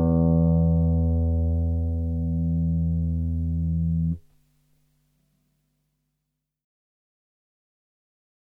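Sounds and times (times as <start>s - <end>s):
rock guitar being tuned: 0.0s - 4.2s.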